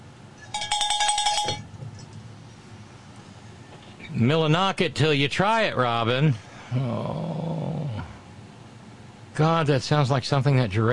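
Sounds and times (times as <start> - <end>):
cowbell clanking: 0.5 - 1.7
speech: 4.2 - 7.4, 9.4 - 10.9.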